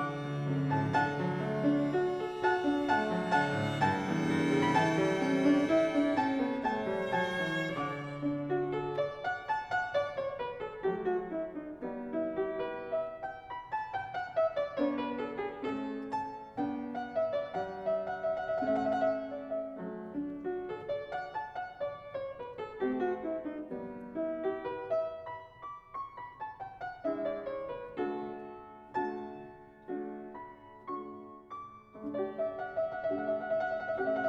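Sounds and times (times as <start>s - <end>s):
violin in sonata for violin and piano: 0.0s - 10.2s
piano in sonata for violin and piano: 0.0s - 34.2s.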